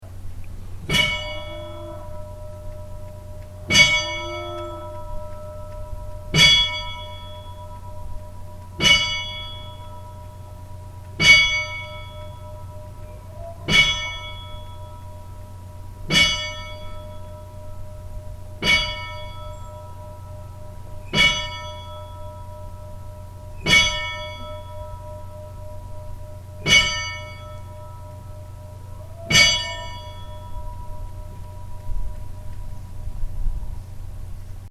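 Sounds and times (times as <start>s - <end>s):
funeral bell ringing at Staðarbakki church: 0.0s - 34.6s.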